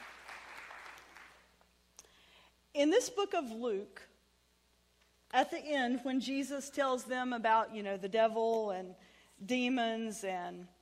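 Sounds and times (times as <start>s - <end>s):
audience clapping: 0.0s - 1.5s
speech: 2.8s - 4.1s, 5.3s - 10.8s.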